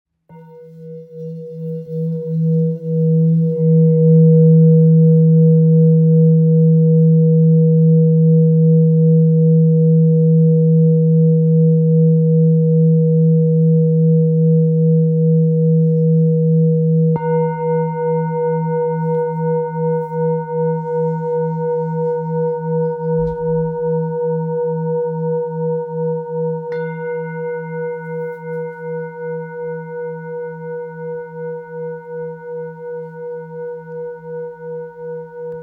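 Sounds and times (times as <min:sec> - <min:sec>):
thick Tibetan singing bowl: 0:00.3 - 0:35.6.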